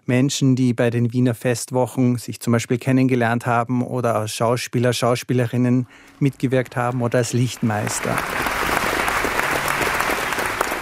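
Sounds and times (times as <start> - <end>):
speech: 0.1 - 8.7
theatre premiere audience applause: 6.1 - 10.8.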